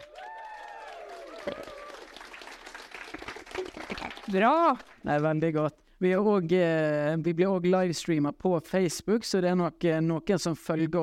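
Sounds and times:
audience whooping and cheering: 0:00.0 - 0:02.5
live audience applause: 0:00.0 - 0:05.1
speech: 0:01.4 - 0:01.8, 0:04.3 - 0:11.0.

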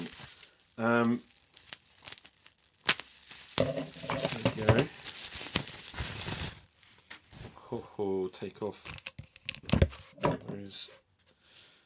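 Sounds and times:
bubble wrap around a tube being snipped and unwrapped: 0:00.0 - 0:09.7
speech: 0:00.8 - 0:01.3, 0:07.7 - 0:09.0, 0:10.7 - 0:11.0.

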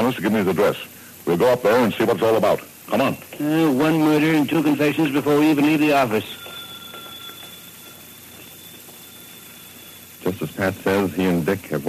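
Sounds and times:
speech: 0:00.0 - 0:06.4, 0:10.6 - 0:11.8
hiss: 0:00.0 - 0:11.8
telephone ringing: 0:02.9 - 0:11.8.

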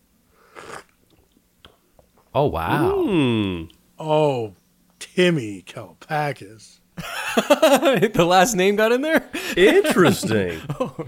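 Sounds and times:
slurping sip of a drink: 0:00.3 - 0:01.4
speech: 0:02.3 - 0:04.6, 0:05.2 - 0:11.0
laughter: 0:07.0 - 0:08.2, 0:09.2 - 0:11.0.

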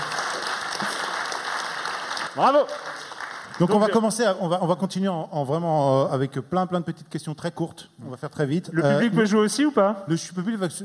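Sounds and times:
audience applause: 0:00.0 - 0:04.2
speech: 0:02.4 - 0:02.9, 0:03.6 - 0:10.8.

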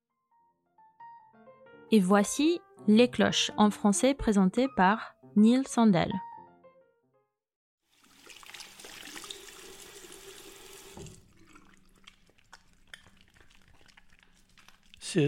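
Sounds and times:
speech: 0:01.9 - 0:06.3
washing hands under running tap water: 0:07.9 - 0:15.2.

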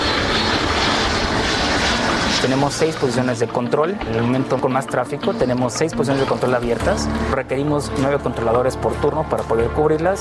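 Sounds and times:
airplane taking off: 0:00.0 - 0:10.1
speech: 0:02.4 - 0:10.1.

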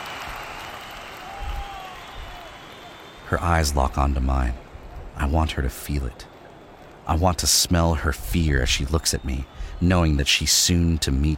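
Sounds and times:
wave of crowd applause: 0:00.0 - 0:03.5
speech: 0:03.3 - 0:04.6, 0:05.2 - 0:06.3, 0:07.1 - 0:11.3.

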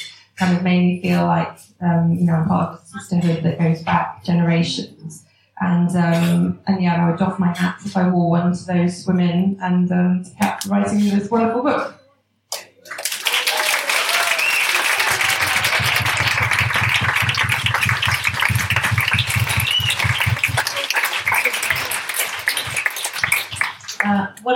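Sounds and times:
speech: 0:00.4 - 0:12.0
audience applause: 0:12.8 - 0:24.2.

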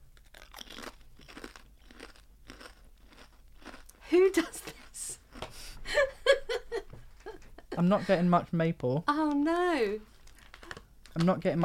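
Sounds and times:
person crunching on pork scratchings: 0:00.1 - 0:04.0
speech: 0:04.1 - 0:04.7, 0:07.8 - 0:10.1, 0:11.2 - 0:11.6
laughter: 0:05.9 - 0:08.3.

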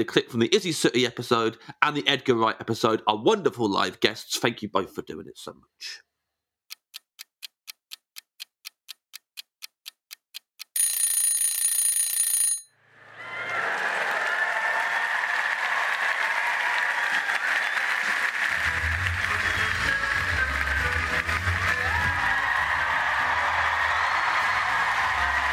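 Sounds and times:
speech: 0:00.0 - 0:06.1
clock-like ticks: 0:06.7 - 0:11.3
audience applause at a live stage show as the hosts walk out: 0:13.0 - 0:25.5.

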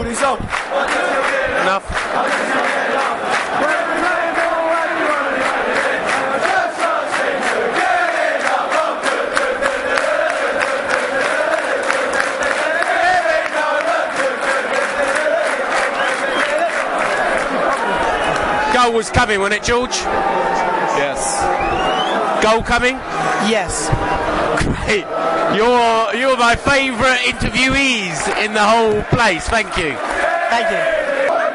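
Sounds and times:
speech: 0:00.0 - 0:03.6, 0:18.9 - 0:30.9
stadium crowd cheering: 0:00.0 - 0:31.5
quick bursts of clapping: 0:00.3 - 0:04.7, 0:05.4 - 0:18.5.

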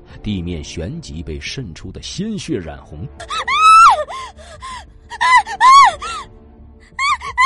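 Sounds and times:
speech: 0:00.2 - 0:03.6
shrill screaming howls: 0:03.3 - 0:04.1, 0:05.2 - 0:06.2, 0:07.0 - 0:07.4.

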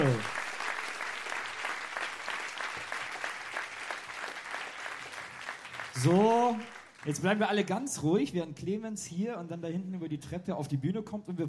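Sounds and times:
audience applause: 0:00.0 - 0:07.4
speech: 0:06.0 - 0:11.4.

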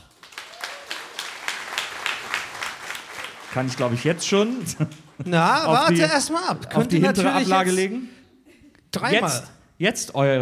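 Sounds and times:
audience applause: 0:00.0 - 0:06.0
speech: 0:03.6 - 0:08.2, 0:08.9 - 0:10.4
laughter: 0:04.3 - 0:07.7.

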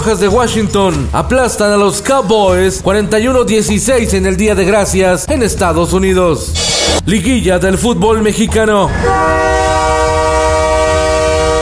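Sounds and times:
speech: 0:00.0 - 0:09.5
low rumble: 0:08.5 - 0:11.6
train locomotive horn blast: 0:08.9 - 0:11.6.

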